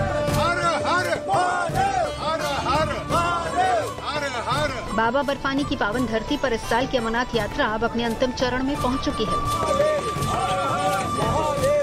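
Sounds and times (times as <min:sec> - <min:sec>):
crowd chanting devotional slogans in mountains: 0:00.0 - 0:04.6, 0:09.6 - 0:11.8
speech: 0:05.0 - 0:10.6.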